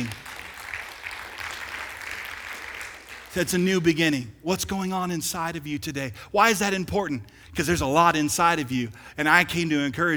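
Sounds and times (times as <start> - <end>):
audience applause: 0.0 - 3.4
speech: 3.3 - 10.1.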